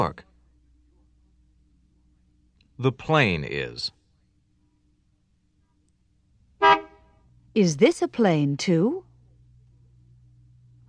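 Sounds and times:
speech: 0.0 - 0.2, 2.8 - 4.0, 7.6 - 9.1
car horn honk: 6.6 - 7.2.

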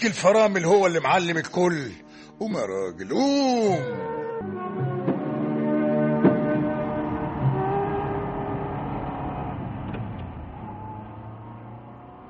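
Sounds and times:
speech: 0.0 - 4.6
car engine revving at a brake repair workshop: 5.2 - 12.2
brief clunks: 9.7 - 10.5.

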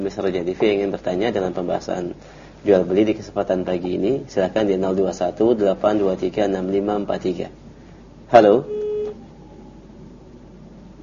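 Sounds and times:
speech: 0.0 - 7.6, 8.3 - 8.8
faint steady phone line hiss: 0.0 - 11.0
electronic beep of a dropped radio call-in line: 8.7 - 9.7.

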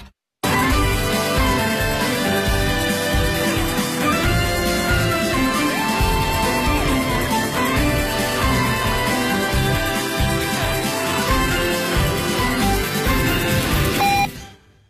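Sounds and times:
busy music on a radio broadcast: 0.4 - 14.5.

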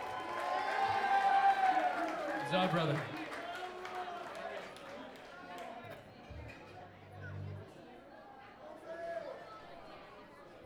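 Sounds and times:
live audience cheering and whooping: 0.0 - 4.2
speech: 2.5 - 3.2.

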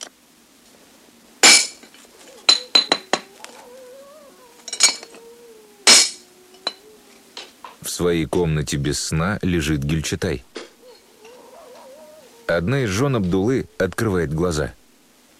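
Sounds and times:
faint hum: 0.0 - 15.3
heavy pistol hammering a machine-gun part in a courtyard: 1.4 - 1.9, 5.9 - 6.2
speech: 8.0 - 10.5, 12.5 - 14.8.

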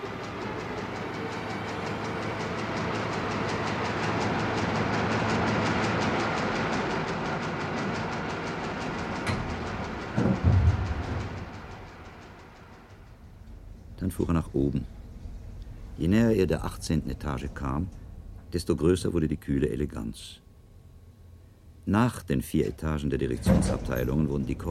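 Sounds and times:
rotary printing press running loudly: 0.0 - 19.1
speech: 14.2 - 15.0, 16.0 - 20.4, 21.8 - 24.7.

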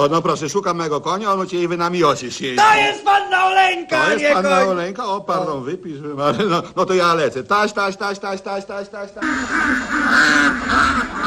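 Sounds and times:
speech: 0.0 - 11.0
many ducks quacking in chorus: 9.2 - 11.2.

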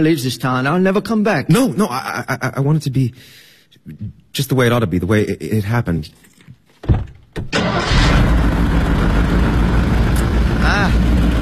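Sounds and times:
speech: 0.0 - 8.0
fairly new car engine with sprung crankshaft starting and running: 7.4 - 11.3.

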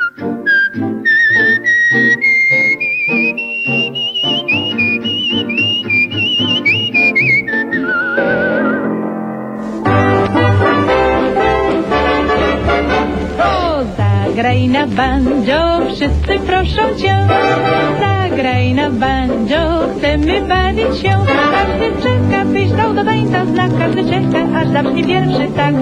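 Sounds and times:
woman whistling a bright lilting melody: 0.0 - 8.9
fuller busier band section: 0.0 - 25.8
lively piano accompaniment: 0.0 - 25.8
speech: 23.0 - 25.8.

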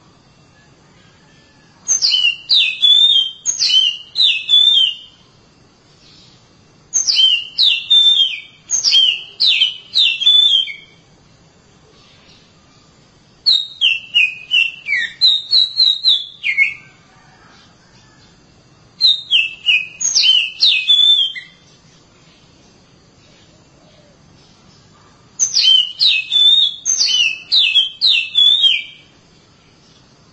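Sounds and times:
Oriental magpie-robin singing whistled phrases: 1.9 - 5.2, 6.9 - 11.0, 13.4 - 17.0, 19.0 - 21.6, 25.4 - 29.1.

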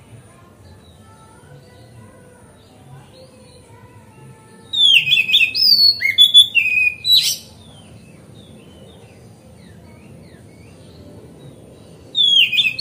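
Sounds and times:
Oriental magpie-robin song: 4.7 - 8.9, 12.1 - 12.8.

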